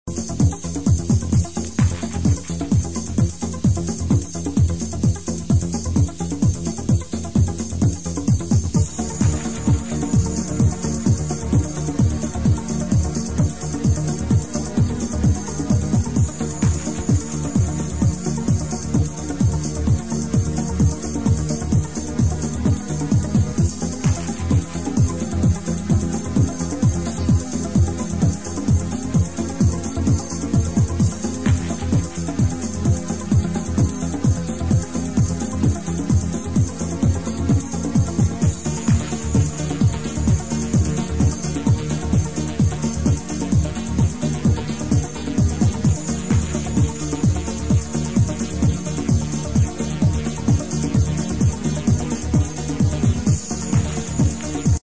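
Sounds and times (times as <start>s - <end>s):
dreamy techno instrumental: 0.0s - 54.8s.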